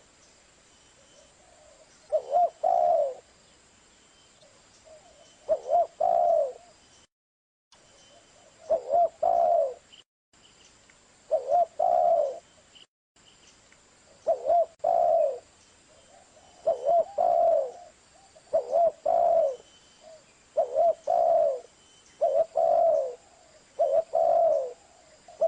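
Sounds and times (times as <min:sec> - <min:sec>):
spotted dove cooing: 0:01.4 - 0:03.3, 0:04.9 - 0:06.8, 0:08.4 - 0:09.8, 0:11.3 - 0:12.4, 0:14.2 - 0:15.5, 0:16.1 - 0:25.4.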